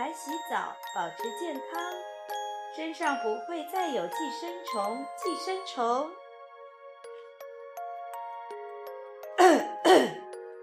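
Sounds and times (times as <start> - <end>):
speech: 0.2 - 2.1, 2.7 - 6.2
coughing: 9.4 - 10.3.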